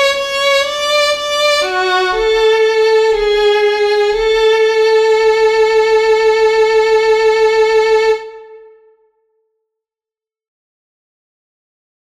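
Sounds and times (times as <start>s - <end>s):
solo violin playing: 0.0s - 9.0s.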